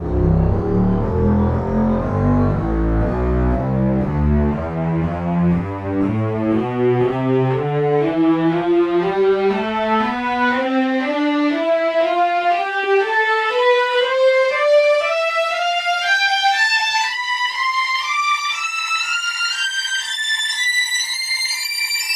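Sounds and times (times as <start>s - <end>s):
strings: 0.0s - 22.0s.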